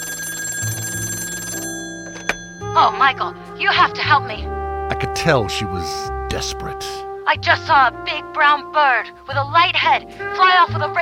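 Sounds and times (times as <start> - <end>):
telephone ringing: 0.0 - 3.6
speech: 2.8 - 11.0.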